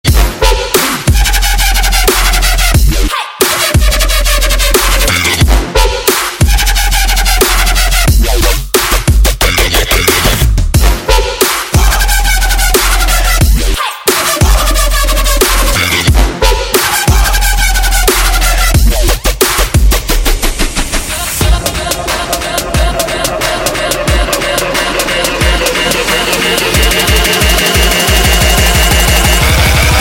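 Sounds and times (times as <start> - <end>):
music beat: 0.0 - 29.9.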